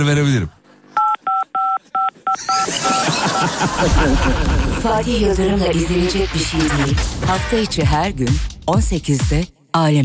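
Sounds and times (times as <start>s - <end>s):
speech: 0.0s - 0.6s, 2.4s - 10.0s
telephone keypad tones: 1.0s - 3.6s
laughter: 2.4s - 5.7s.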